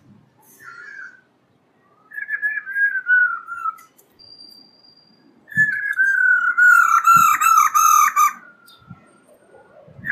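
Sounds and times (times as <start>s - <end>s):
black-throated laughingthrush song of whistles and a harsh burst: 2.0s - 8.0s.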